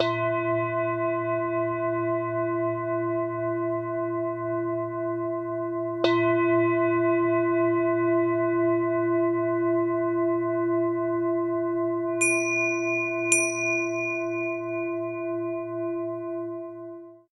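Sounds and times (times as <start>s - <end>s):
singing bowl: 0.0s - 17.3s
tingsha cymbals: 12.2s - 16.1s.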